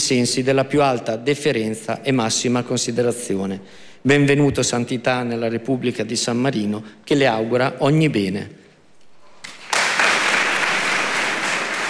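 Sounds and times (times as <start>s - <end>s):
speech: 0.1s - 8.6s
audience applause: 9.4s - 11.8s.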